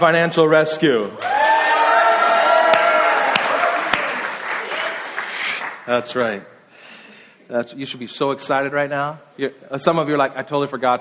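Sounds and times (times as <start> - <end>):
speech: 0.0 - 1.4, 5.9 - 6.6, 7.5 - 10.9
audience clapping: 1.2 - 6.0.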